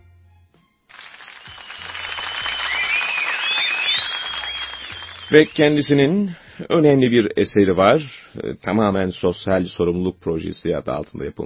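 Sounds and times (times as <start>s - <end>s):
large crowd applause: 0.9s - 5.7s
sharp whistles: 1.0s - 5.9s
speech: 5.3s - 11.4s.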